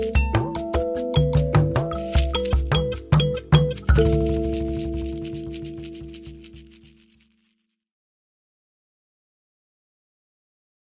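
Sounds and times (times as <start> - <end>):
mbira playing: 0.0 - 7.5.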